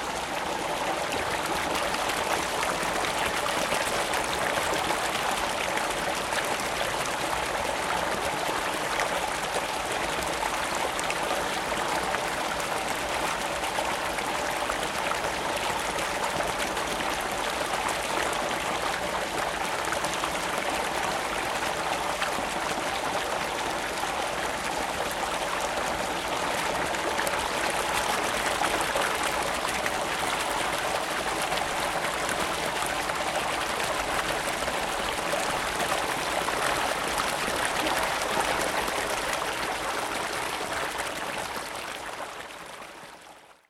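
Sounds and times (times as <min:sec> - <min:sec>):
water in ponds: 0:00.0 - 0:43.6.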